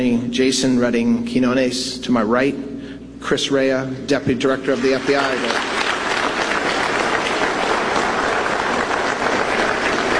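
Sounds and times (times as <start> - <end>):
speech: 0.0 - 5.6
sustained applause from a sizable crowd: 4.6 - 10.1.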